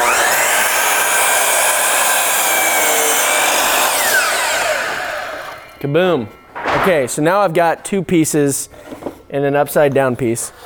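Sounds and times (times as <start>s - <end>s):
power saw cutting a wooden door: 0.0s - 5.8s
speech: 5.8s - 10.6s.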